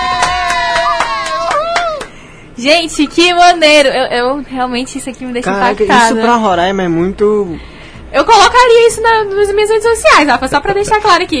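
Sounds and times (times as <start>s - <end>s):
steady clapping in an applause jingle: 0.0s - 2.2s
speech: 2.6s - 11.3s.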